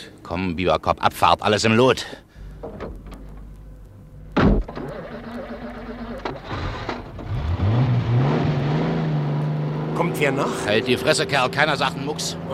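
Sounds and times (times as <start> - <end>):
speech: 0.2 - 2.9, 10.0 - 12.5
car door slamming shut: 4.4 - 5.0
car engine starting, revving and pulling away: 4.6 - 12.5.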